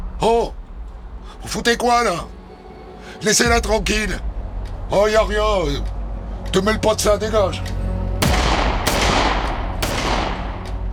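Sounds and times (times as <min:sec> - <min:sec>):
speech: 0:00.2 - 0:00.6, 0:01.5 - 0:02.4, 0:03.2 - 0:04.3, 0:04.9 - 0:07.7
gunshots fired at a motorcyclist with rubber bullets: 0:08.2 - 0:10.9.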